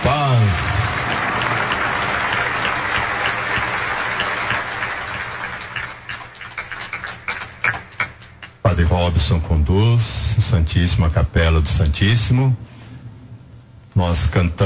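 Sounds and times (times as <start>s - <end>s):
audience applause: 0.0s - 8.6s
speech: 9.0s - 12.7s, 14.0s - 14.6s.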